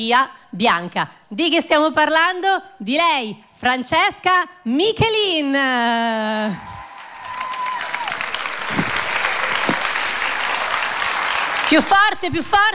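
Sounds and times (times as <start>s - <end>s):
speech: 0.0s - 6.7s, 11.7s - 12.7s
audience applause: 6.7s - 12.2s.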